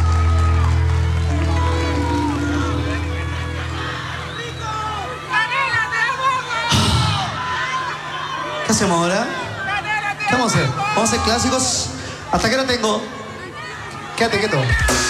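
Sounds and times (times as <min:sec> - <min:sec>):
audience applause and cheering: 0:00.0 - 0:08.7
speech: 0:08.8 - 0:09.4, 0:10.4 - 0:13.2, 0:14.2 - 0:15.0.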